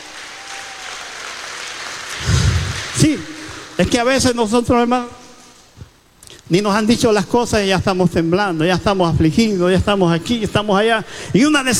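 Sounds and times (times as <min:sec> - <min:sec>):
audience applause: 0:00.0 - 0:03.7
speech: 0:03.0 - 0:05.2, 0:06.5 - 0:11.7.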